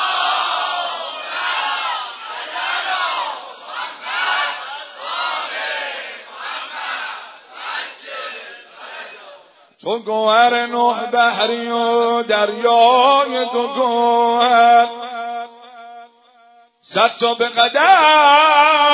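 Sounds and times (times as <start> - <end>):
large crowd loudly chanting salawat in unison: 0.0 - 9.7
speech: 9.8 - 15.0, 16.9 - 18.9.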